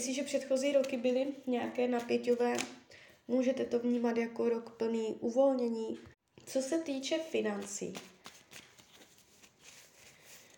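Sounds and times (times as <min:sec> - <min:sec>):
speech: 0:00.0 - 0:08.1
tarot cards being drawn from a deck: 0:07.6 - 0:10.5.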